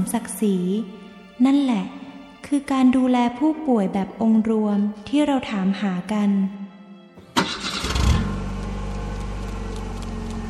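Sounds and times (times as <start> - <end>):
speech: 0.0 - 6.6
car engine starting: 7.2 - 10.4.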